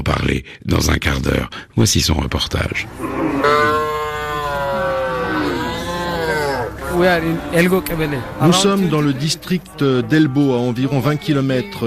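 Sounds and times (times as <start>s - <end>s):
speech: 0.1s - 3.6s, 7.0s - 11.8s
oxen lowing in Ethiopian village: 2.8s - 7.6s.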